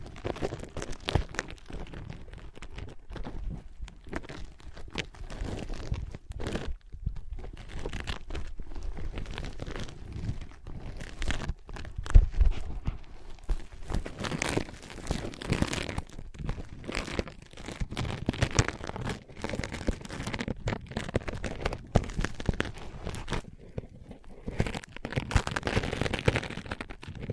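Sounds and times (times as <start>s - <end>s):
tapping, scratching and tracing on ear pads: 0.0s - 27.3s.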